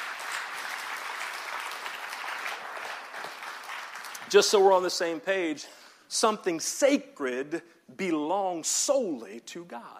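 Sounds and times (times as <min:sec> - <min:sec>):
audience clapping in praise: 0:00.0 - 0:05.0
speech: 0:04.3 - 0:09.9.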